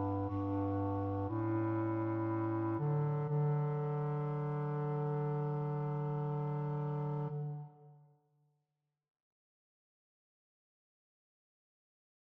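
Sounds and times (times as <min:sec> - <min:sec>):
bass: 0:00.0 - 0:07.7.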